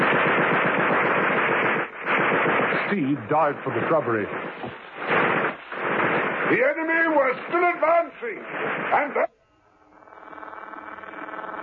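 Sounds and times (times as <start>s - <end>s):
machine gun fire: 0.0s - 9.3s
speech: 2.9s - 4.8s, 6.5s - 9.3s.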